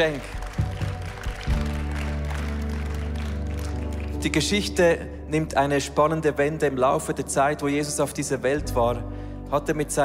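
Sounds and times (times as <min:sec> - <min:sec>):
speech: 0:00.0 - 0:00.4, 0:04.2 - 0:10.0
short enthusiastic applause: 0:00.0 - 0:04.4.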